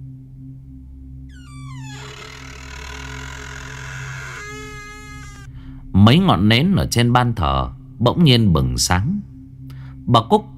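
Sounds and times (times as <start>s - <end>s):
old door hinge creaking: 1.3s - 5.5s
speech: 6.0s - 9.3s, 10.1s - 10.5s.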